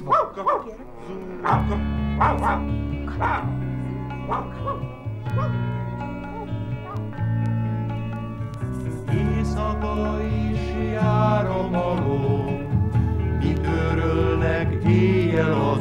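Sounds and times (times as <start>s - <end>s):
dog barking: 0.0s - 0.8s, 1.4s - 7.2s
music: 0.0s - 15.7s
speech: 0.4s - 3.6s, 4.3s - 6.1s, 9.1s - 12.6s.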